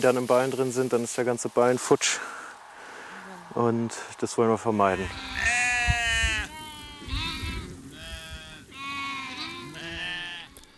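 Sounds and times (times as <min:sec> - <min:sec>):
speech: 0:00.0 - 0:02.4, 0:03.6 - 0:05.4
sheep bleating: 0:04.9 - 0:10.7.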